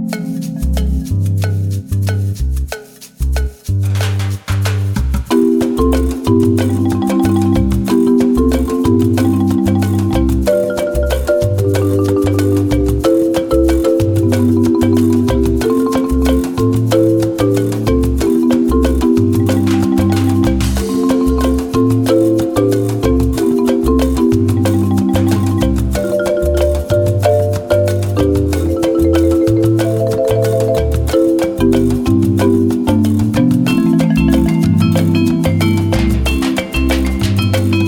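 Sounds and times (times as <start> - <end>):
double drums: 0.1 - 37.8.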